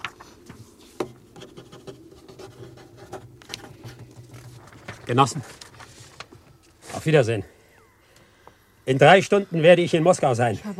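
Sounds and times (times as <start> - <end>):
pen scratching and tapping on paper writing a resolution by hand: 1.4 - 3.3
speech: 5.1 - 5.6, 7.0 - 7.5, 8.9 - 10.7.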